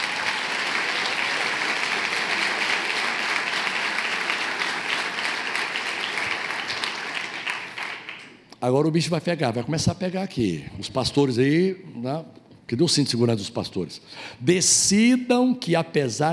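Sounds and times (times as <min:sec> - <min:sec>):
audience applause: 0:00.0 - 0:08.4
speech: 0:08.6 - 0:16.3.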